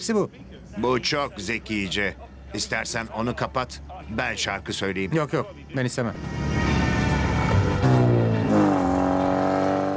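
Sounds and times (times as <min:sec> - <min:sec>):
speech: 0:00.0 - 0:06.7
car engine droning as the vehicle drives and accelerates: 0:06.1 - 0:09.9.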